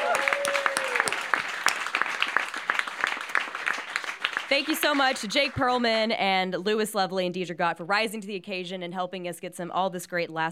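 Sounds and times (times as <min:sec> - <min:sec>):
small studio audience at KUTX Studio 1A applauding after a live band set: 0:00.0 - 0:06.0
speech: 0:04.5 - 0:10.5.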